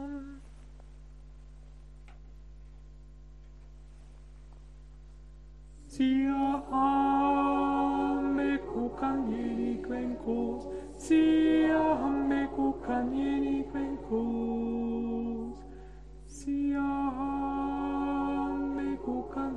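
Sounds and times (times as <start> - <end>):
tenor singing: 5.9 - 19.5.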